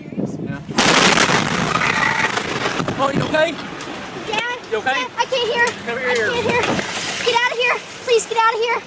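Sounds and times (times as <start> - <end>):
fertilizer chemical storage facility explosion in West, Texas: 0.7 - 3.4
speech: 3.0 - 3.7, 4.7 - 8.8.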